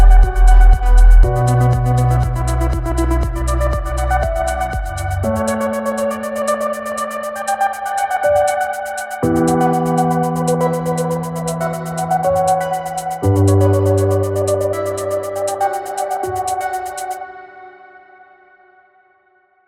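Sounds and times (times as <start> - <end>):
piano ballad: 0.0 - 18.1.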